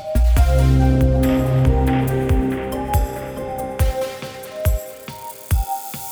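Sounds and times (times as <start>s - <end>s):
growly synth pads: 0.0s - 4.4s.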